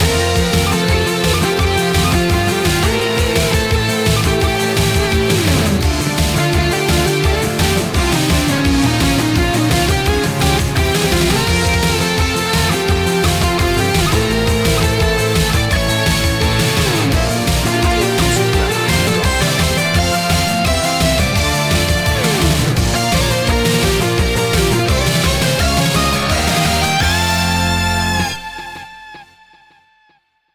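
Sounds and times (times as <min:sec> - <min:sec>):
J-pop victory music: 0:00.0 - 0:29.4.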